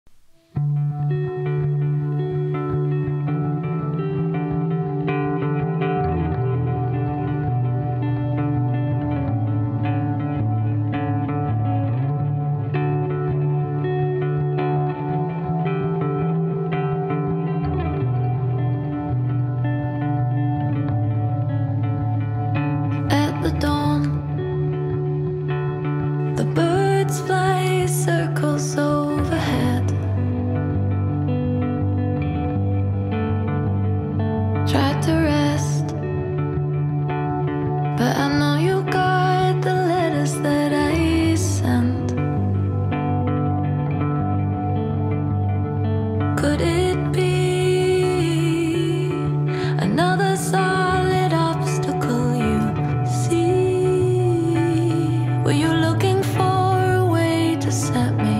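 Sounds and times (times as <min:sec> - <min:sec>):
acoustic music: 0:00.1 - 0:58.3.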